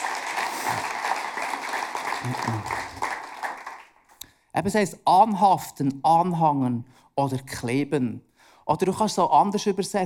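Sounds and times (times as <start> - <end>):
audience applause: 0.0 - 4.0
speech: 2.2 - 3.0, 4.6 - 10.0.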